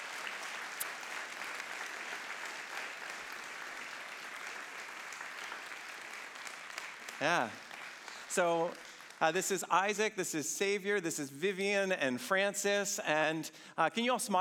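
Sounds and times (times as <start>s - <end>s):
warm audience applause: 0.0s - 9.8s
speech: 7.2s - 7.6s, 8.3s - 14.3s.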